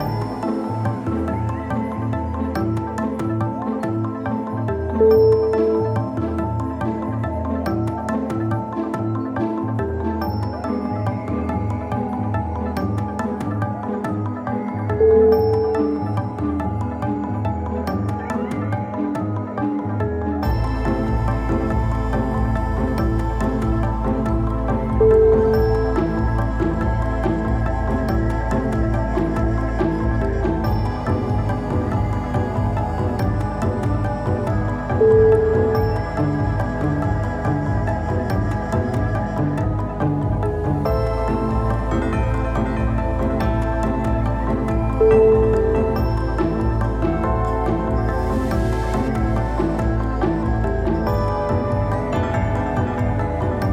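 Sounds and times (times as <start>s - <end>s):
spy fiction music: 0.0s - 53.7s.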